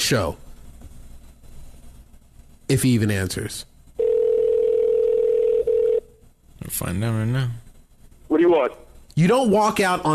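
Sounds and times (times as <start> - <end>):
speech: 0.1 - 0.4, 2.7 - 3.7, 6.6 - 7.6, 8.3 - 10.1
telephone dial tone while calling someone: 4.0 - 6.0.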